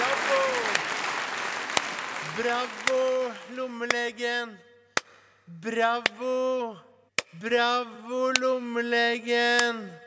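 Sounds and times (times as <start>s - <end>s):
audience applause: 0.0s - 3.6s
speech: 2.4s - 4.7s, 5.5s - 10.0s.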